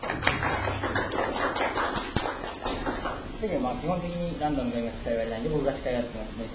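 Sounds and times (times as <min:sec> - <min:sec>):
applause clapping: 0:00.0 - 0:03.3
speech: 0:03.4 - 0:06.5.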